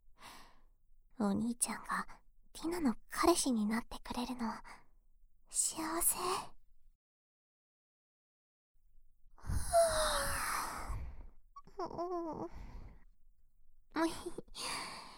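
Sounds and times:
speech: 1.2s - 4.8s, 5.5s - 6.5s, 11.8s - 12.7s, 14.0s - 15.0s
yawn: 9.4s - 13.0s.

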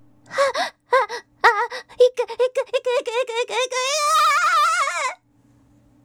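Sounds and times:
person screaming while climaxing: 0.4s - 5.2s.

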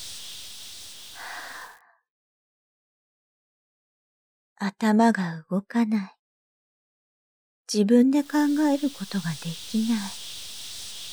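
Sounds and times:
slow breath during a guided breathing exercise: 0.0s - 1.8s, 8.2s - 11.1s
speech: 4.6s - 6.2s, 7.7s - 10.2s.

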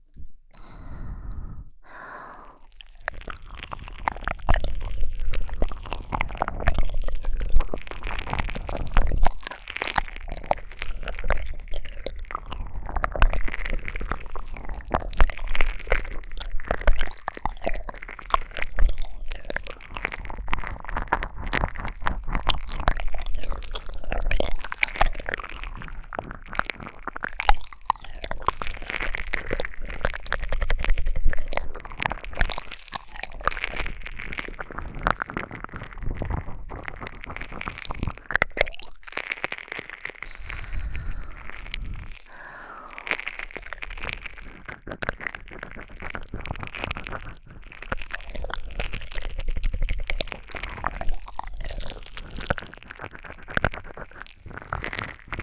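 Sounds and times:
ear licking sounds: 0.0s - 55.4s
squeezing sounds: 34.0s - 47.8s.

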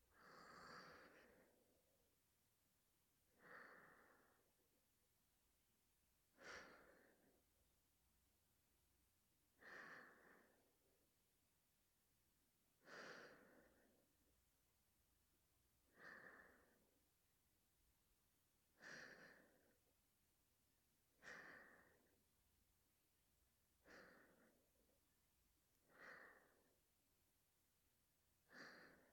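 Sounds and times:
breathing and sleep breathing: 0.1s - 1.8s, 3.3s - 4.6s, 6.3s - 7.4s, 9.6s - 10.9s, 12.8s - 14.1s, 15.9s - 17.0s, 18.8s - 19.8s, 21.2s - 22.2s, 23.8s - 24.9s, 25.8s - 26.8s, 28.4s - 29.1s.

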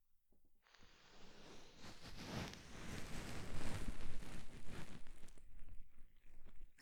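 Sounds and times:
ASMR ear cleaning of the left ear: 1.2s - 6.6s.

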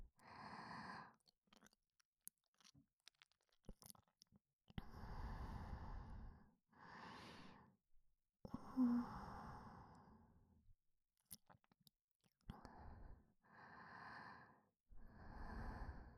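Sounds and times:
breathing in the left ear: 0.2s - 1.2s, 4.8s - 7.8s, 8.5s - 10.4s, 12.5s - 16.1s.

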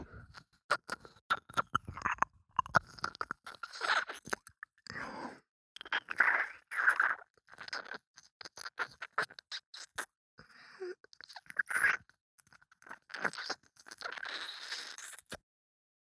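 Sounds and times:
ear licking sounds: 0.7s - 4.5s, 5.8s - 10.1s, 11.1s - 15.4s.

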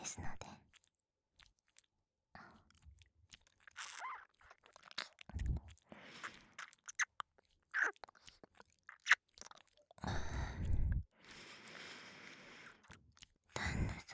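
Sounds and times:
ear licking sounds with left and right reversed: 2.6s - 13.9s.

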